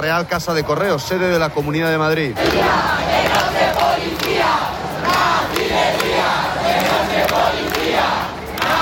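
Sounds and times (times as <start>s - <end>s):
speech: 0.0s - 6.4s
protest crowd shouting and jeering at police: 2.3s - 8.8s.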